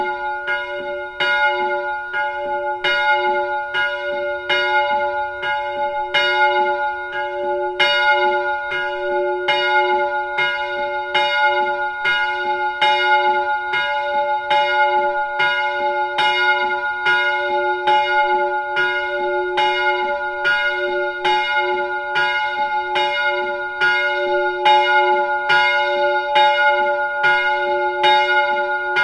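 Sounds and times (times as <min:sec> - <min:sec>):
bells outdoors: 0:00.0 - 0:29.0.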